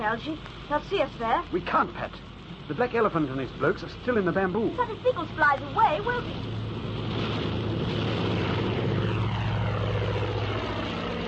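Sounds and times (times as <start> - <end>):
speech: 0.1 - 7.3
Mosquito aircraft engine starting up: 2.0 - 11.2.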